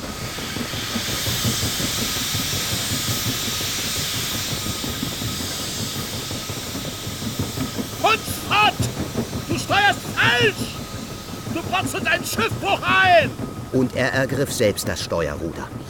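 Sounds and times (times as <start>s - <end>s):
steamship engine wheezing and hissing as the ship moves through fog: 0.0s - 15.8s
speech: 10.4s - 10.8s, 11.6s - 15.8s.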